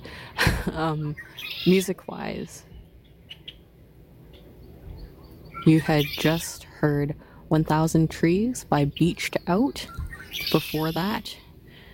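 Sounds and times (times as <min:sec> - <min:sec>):
low rumble: 0:00.0 - 0:11.9
speech: 0:00.8 - 0:02.7, 0:05.6 - 0:11.4
red-winged blackbird calling: 0:01.0 - 0:06.6, 0:08.8 - 0:11.4.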